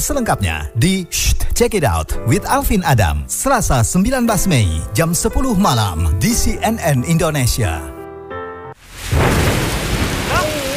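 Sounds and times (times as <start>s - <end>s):
speech: 0.0s - 7.9s
heavy rain pouring down: 8.8s - 10.7s.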